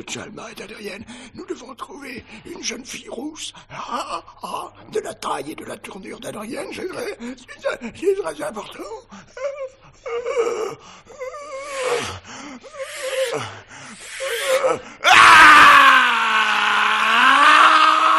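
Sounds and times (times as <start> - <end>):
speech: 0.0 - 16.2
man gasping as lungs clear: 9.1 - 15.0
man screaming as lungs clear: 14.1 - 18.1.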